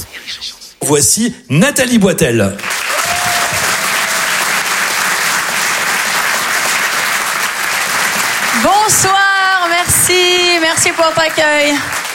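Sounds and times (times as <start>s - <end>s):
speech: 0.3s - 2.8s, 10.1s - 12.1s
audience applause at a comedy and song show: 2.6s - 12.1s.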